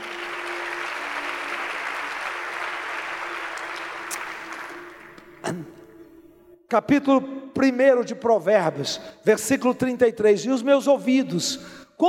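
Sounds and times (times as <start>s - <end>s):
audience applause: 0.0s - 5.5s
speech: 5.4s - 5.8s, 6.7s - 12.0s.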